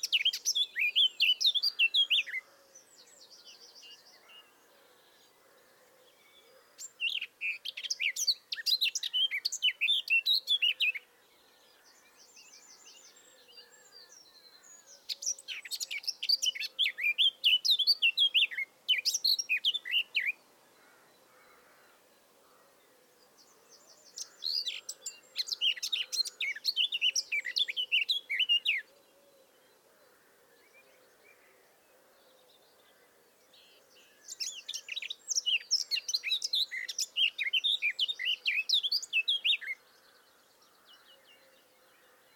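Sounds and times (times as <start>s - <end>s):
Eurasian blackcap singing: 0.0s - 2.4s, 7.0s - 11.0s, 15.0s - 20.4s, 24.1s - 28.9s, 34.3s - 39.8s
faint background bird chirps: 0.0s - 42.3s.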